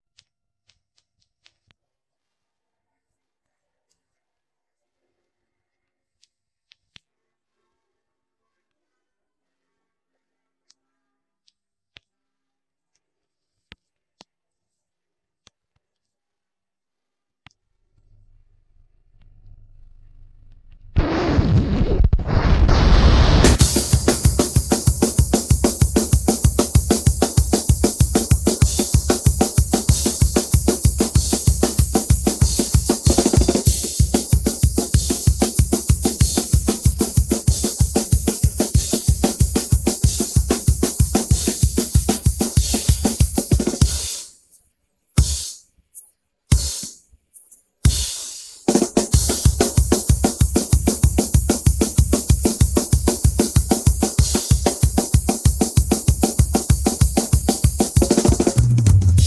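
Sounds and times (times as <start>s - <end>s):
drums: 21.0s - 44.3s, 45.2s - 45.6s, 46.5s - 47.0s, 47.8s - 59.2s.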